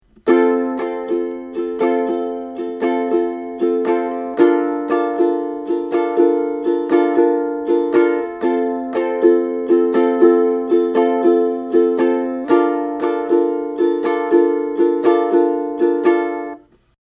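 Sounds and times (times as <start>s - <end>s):
ukulele strumming: 0.0s - 16.8s.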